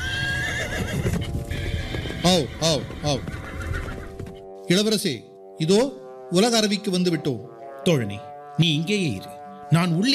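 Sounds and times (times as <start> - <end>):
horse neighing: 0.0 - 4.4
speech: 2.3 - 3.4, 4.7 - 10.1.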